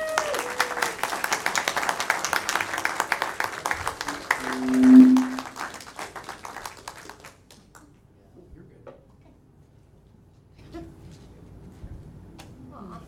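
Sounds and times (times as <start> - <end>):
audience applause welcoming a speaker: 0.0 - 7.3.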